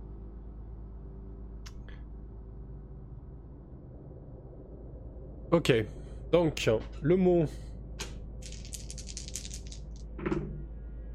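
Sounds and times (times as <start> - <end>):
speech: 5.5 - 7.7
two dice being rolled: 8.4 - 10.0.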